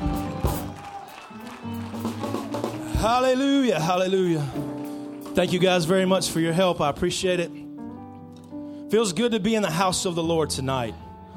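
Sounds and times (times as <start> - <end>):
audience clapping hands: 0.0 - 5.9
speech: 3.0 - 4.7, 5.4 - 7.6, 8.9 - 11.0.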